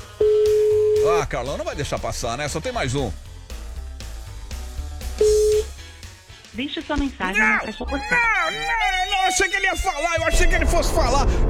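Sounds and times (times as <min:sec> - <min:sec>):
loud music: 0:00.0 - 0:11.4
telephone ring tone during a radio call-in prize game: 0:00.2 - 0:01.0, 0:05.2 - 0:05.7
speech: 0:01.0 - 0:03.2, 0:06.6 - 0:11.4.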